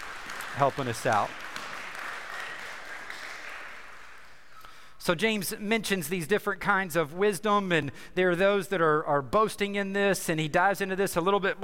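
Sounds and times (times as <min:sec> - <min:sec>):
crowd applause: 0:00.0 - 0:04.4
speech: 0:00.6 - 0:01.4, 0:05.0 - 0:11.6.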